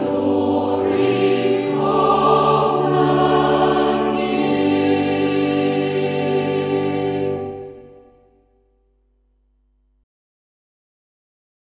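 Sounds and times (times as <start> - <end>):
choir singing hymns: 0.0 - 8.3.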